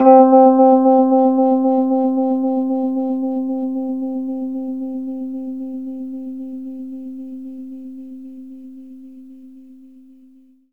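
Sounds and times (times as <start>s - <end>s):
Rhodes electric piano fast in C: 0.0s - 6.0s.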